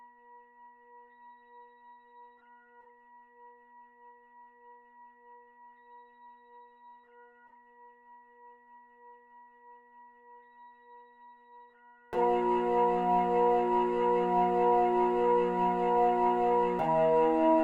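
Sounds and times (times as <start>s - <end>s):
strings: 12.2s - 17.6s.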